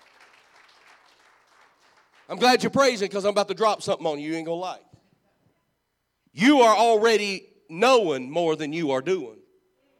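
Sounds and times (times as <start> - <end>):
crowd applause: 0.0 - 2.4
speech: 2.3 - 4.9, 6.4 - 9.4.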